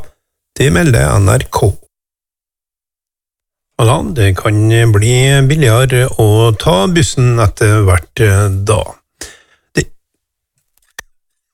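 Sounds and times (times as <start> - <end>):
speech: 0.6 - 1.8, 3.8 - 9.9
cough: 9.8 - 10.0.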